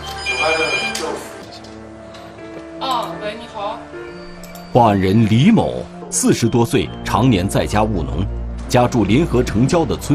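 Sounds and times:
telephone ringing: 0.0 - 1.4
speech: 2.8 - 10.1.

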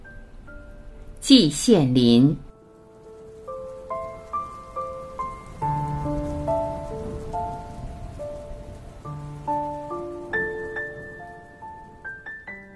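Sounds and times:
spring rain falling: 0.0 - 12.7
speech: 1.3 - 2.5.

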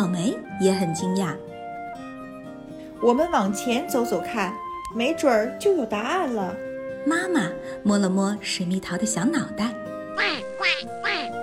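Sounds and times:
speech: 0.0 - 1.5, 3.0 - 11.3
ducks quacking: 10.2 - 11.4.

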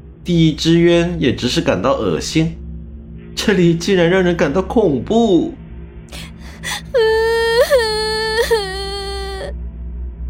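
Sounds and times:
speech: 0.2 - 2.6, 3.4 - 6.3
girl crying: 6.2 - 9.5.

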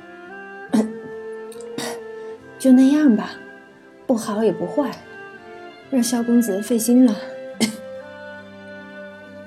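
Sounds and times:
person coughing: 0.8 - 1.0, 1.8 - 2.0, 7.6 - 7.8
speech: 2.6 - 3.4, 4.1 - 5.1, 5.9 - 7.3.

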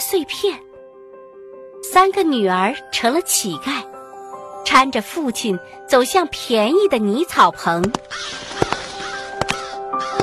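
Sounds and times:
speech: 0.1 - 0.7, 2.0 - 3.9, 4.7 - 8.4
crows cawing: 8.0 - 10.2.

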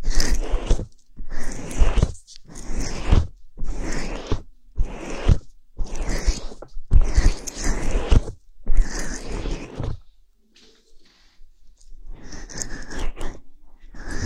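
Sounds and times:
fluffy bonten ear pick brushing strokes during ear cleaning: 0.0 - 10.1, 11.0 - 14.2.

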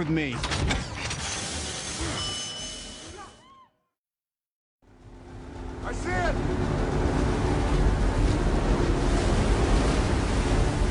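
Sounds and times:
speech: 0.0 - 0.9
huge tsunami wave crashing: 5.2 - 10.8.

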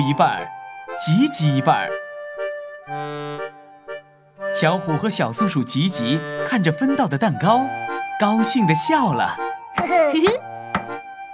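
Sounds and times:
speech: 0.0 - 2.0, 2.9 - 3.5, 4.6 - 10.5
knocking on a door: 9.8 - 11.0.

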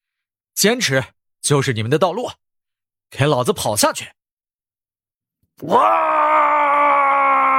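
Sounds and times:
speech: 0.6 - 2.4, 3.1 - 4.2, 5.6 - 6.3
man's primal roaring shout: 5.6 - 7.5.

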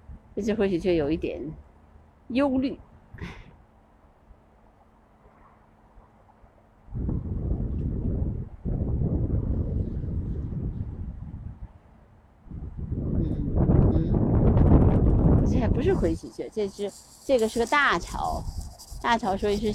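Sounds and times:
speech: 0.4 - 1.7, 2.3 - 3.4, 16.1 - 19.7
strong wind blowing: 6.9 - 19.7.

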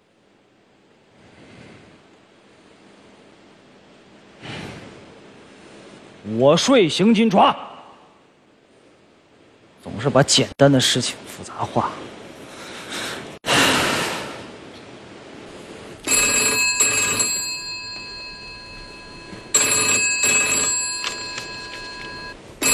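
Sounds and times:
speech: 6.2 - 7.7, 10.0 - 12.0
telephone ringing: 16.0 - 22.7.

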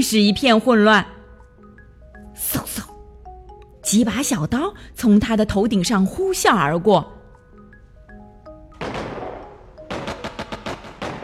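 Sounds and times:
speech: 0.0 - 1.2, 3.9 - 7.2
gunfire sound effect: 8.8 - 11.2.

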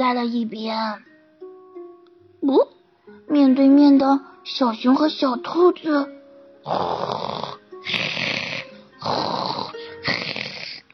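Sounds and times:
speech: 0.0 - 1.1, 2.4 - 8.4
loud rasping snoring of sleeping animals: 6.6 - 10.9.

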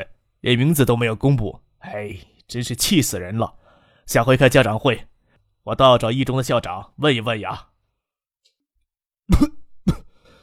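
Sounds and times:
speech: 0.0 - 7.7, 9.3 - 10.0
person coughing and sputtering after choking on cola: 9.3 - 10.2.

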